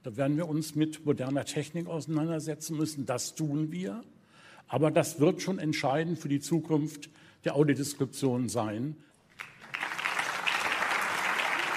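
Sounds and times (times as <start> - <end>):
speech: 0.0 - 9.5
audience applause: 9.4 - 11.7.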